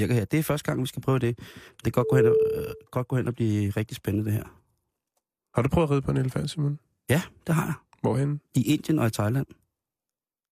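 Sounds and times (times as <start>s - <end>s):
speech: 0.0s - 4.6s, 5.6s - 9.6s
telephone ringing tone while calling: 2.0s - 2.8s.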